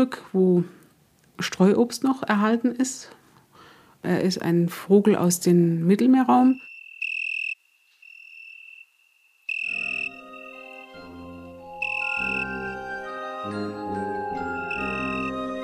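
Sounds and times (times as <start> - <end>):
speech: 0.0 - 0.8, 1.4 - 3.2, 4.0 - 6.7
Italian tree cricket chirping: 6.3 - 11.0, 11.8 - 12.6, 14.6 - 15.3.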